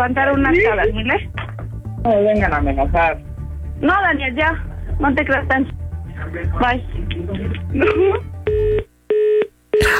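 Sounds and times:
speech: 0.0 - 8.9
phone line tone after call hang-up: 8.4 - 9.9.

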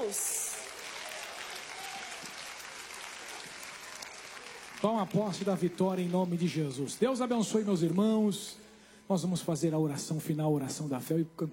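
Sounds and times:
audience clapping: 0.0 - 8.5
speech: 4.8 - 11.5.

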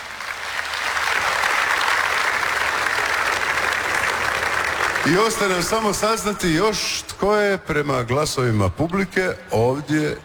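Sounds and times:
outdoor audience applauding on a town square in Požega: 0.0 - 6.0
speech: 5.0 - 10.2.

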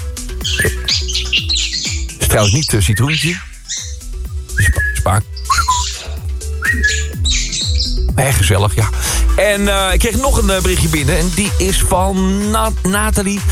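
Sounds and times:
parrot squawking and whistling: 0.4 - 8.1
speech: 2.3 - 3.8, 4.6 - 5.3, 8.2 - 13.5.

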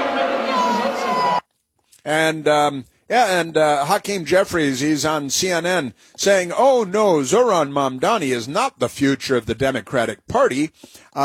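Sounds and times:
crowd booing: 0.0 - 1.4
speech: 2.0 - 11.2.

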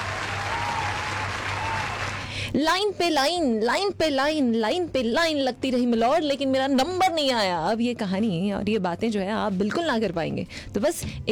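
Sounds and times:
loud audience applause: 0.0 - 2.3
speech: 2.5 - 11.3.

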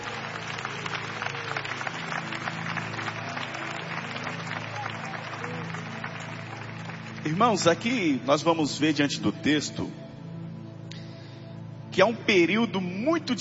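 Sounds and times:
audience clapping in praise: 0.0 - 8.0
speech: 7.3 - 10.0, 12.0 - 13.3.

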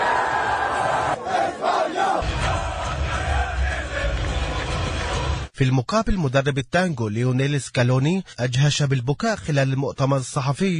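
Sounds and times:
crowd of football fans cheering and shouting in celebration at a final match: 0.0 - 5.5
speech: 5.6 - 10.7.

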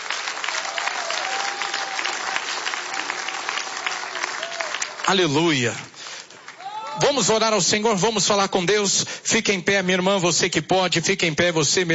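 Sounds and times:
audience applause: 0.0 - 7.1
speech: 5.1 - 5.9, 7.0 - 11.9.

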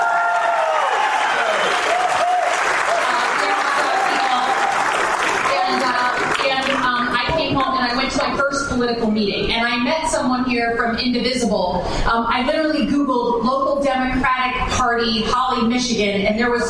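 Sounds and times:
whoops and cheers: 0.0 - 5.3
audience applause for the hot dog: 0.0 - 7.7
speech: 8.8 - 16.6.

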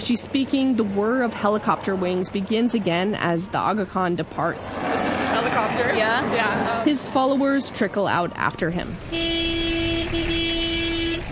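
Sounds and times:
speech: 0.0 - 9.5
dense traffic rumble: 0.0 - 11.3
car horns honking on a crowded narrow road: 9.0 - 11.3.

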